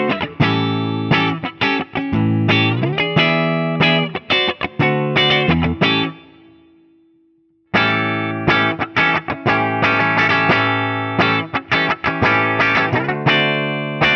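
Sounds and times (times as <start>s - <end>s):
electric guitar with stop tailpiece: 0.0s - 6.7s, 7.7s - 14.1s.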